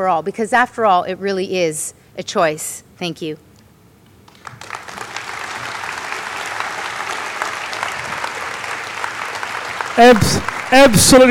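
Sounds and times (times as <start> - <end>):
speech: 0.0 - 3.5, 10.0 - 11.2
audience applause: 4.3 - 11.2.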